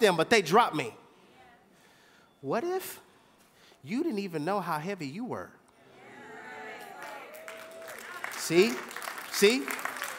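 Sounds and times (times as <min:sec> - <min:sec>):
speech: 0:00.0 - 0:01.0, 0:02.4 - 0:03.0, 0:03.8 - 0:05.6, 0:08.5 - 0:09.9
audience golf clapping: 0:06.8 - 0:10.1.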